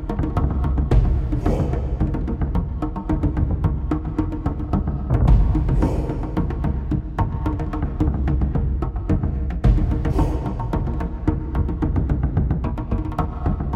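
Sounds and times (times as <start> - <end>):
war drums: 0.2 - 12.6.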